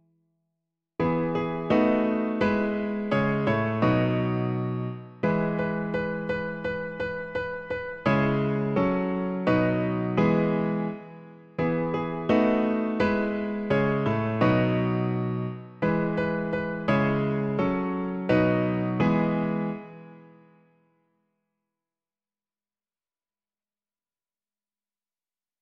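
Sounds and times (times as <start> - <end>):
piano: 1.0 - 21.1.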